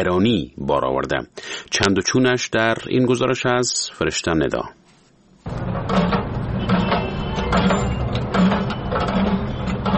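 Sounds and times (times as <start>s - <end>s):
speech: 0.0s - 4.8s
dry water pump in Kabul running: 5.5s - 9.9s.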